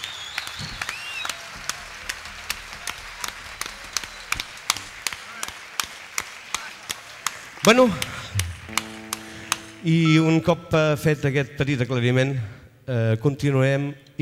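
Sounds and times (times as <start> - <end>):
audience applause: 0.0 - 9.6
speech: 7.6 - 8.1, 9.8 - 14.2.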